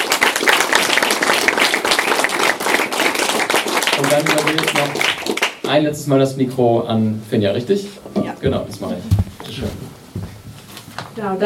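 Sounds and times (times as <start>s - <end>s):
audience applause: 0.0s - 5.8s
speech: 4.1s - 9.8s, 11.2s - 11.4s.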